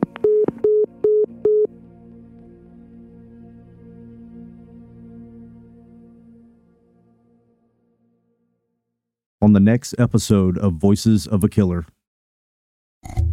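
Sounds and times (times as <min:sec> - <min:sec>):
steady low telephone tone: 0:00.0 - 0:01.7
speech: 0:09.5 - 0:12.0.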